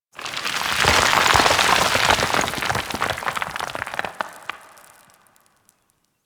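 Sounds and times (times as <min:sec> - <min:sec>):
rock cores pouring: 0:00.0 - 0:06.2.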